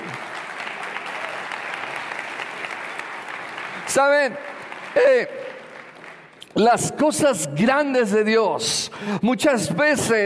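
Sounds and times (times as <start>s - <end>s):
audience applauding: 0.0s - 6.6s
speech: 3.9s - 5.4s, 6.6s - 10.2s.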